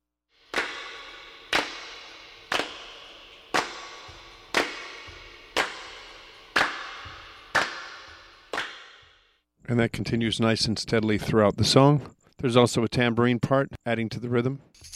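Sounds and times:
hand claps with echo chamber reverb: 0:00.5 - 0:09.3
speech: 0:09.7 - 0:14.9.

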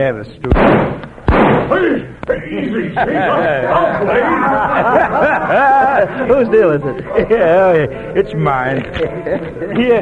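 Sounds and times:
speech: 0:00.0 - 0:01.1, 0:01.7 - 0:09.9
gunshot fired at a man's feet: 0:00.5 - 0:01.9
laughter: 0:02.5 - 0:09.9.

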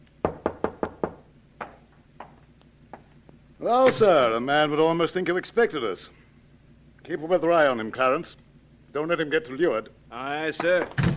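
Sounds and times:
knocking on a door: 0:00.2 - 0:02.3
speech: 0:03.6 - 0:06.2, 0:07.1 - 0:11.0.

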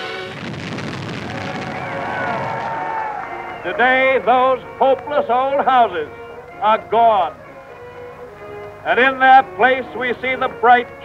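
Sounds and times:
demolition blast rumbling roar clearing old houses for a housing project: 0:00.0 - 0:03.3
speech: 0:03.6 - 0:07.4, 0:08.8 - 0:11.0.

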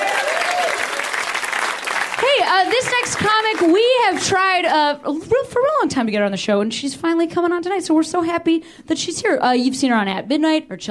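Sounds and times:
audience applause: 0:00.0 - 0:04.2
speech: 0:02.4 - 0:10.8.

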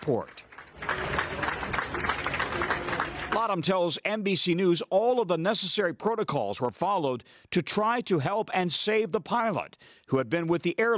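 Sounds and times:
speech: 0:00.0 - 0:01.2, 0:03.4 - 0:10.9
airplane passengers applauding flight crew: 0:00.0 - 0:03.7.

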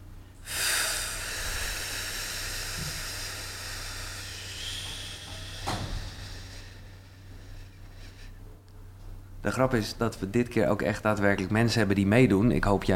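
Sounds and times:
low hum: 0:00.0 - 0:11.1
audience breathing out together: 0:00.4 - 0:08.5
speech: 0:09.5 - 0:12.9.

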